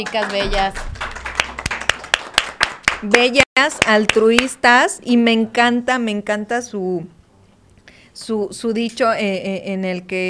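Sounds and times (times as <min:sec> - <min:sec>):
speech: 0:00.0 - 0:00.9, 0:03.0 - 0:07.2, 0:08.2 - 0:10.2
applause: 0:00.0 - 0:04.5.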